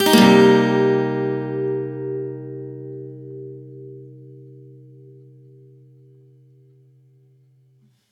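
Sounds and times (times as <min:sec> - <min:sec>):
acoustic guitar C minor seventh upstroke: 0:00.0 - 0:06.4.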